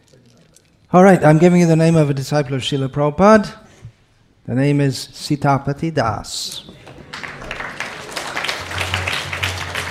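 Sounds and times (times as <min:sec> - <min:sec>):
speech: 0:00.9 - 0:03.6, 0:04.5 - 0:06.8
crowd applause: 0:06.7 - 0:09.8.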